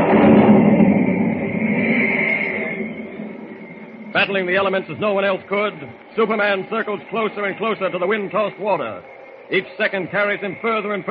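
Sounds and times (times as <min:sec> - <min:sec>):
rolling thunder: 0:00.0 - 0:07.6
speech: 0:04.2 - 0:11.1.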